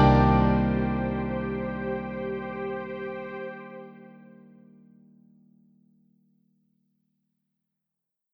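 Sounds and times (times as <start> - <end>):
jazz ballad backing music: 0.0 - 2.8.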